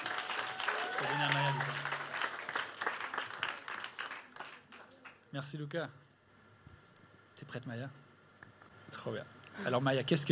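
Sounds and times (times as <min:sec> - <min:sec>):
audience applause: 0:00.0 - 0:05.2
speech: 0:01.0 - 0:01.9, 0:05.3 - 0:06.0, 0:07.5 - 0:08.0, 0:09.0 - 0:10.3.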